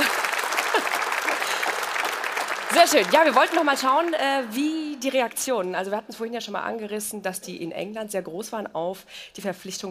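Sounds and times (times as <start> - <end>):
show audience applauding: 0.0 - 5.0
speech: 2.8 - 9.8.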